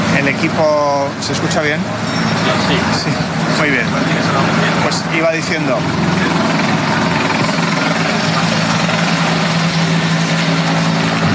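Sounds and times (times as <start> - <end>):
firefighting aircraft passing overhead at a wildfire: 0.0 - 11.3
speech: 0.4 - 7.2.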